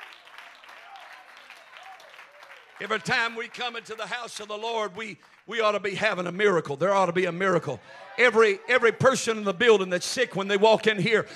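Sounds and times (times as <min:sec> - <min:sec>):
faint clapping from audience: 0:00.0 - 0:06.7
speech: 0:02.8 - 0:11.3.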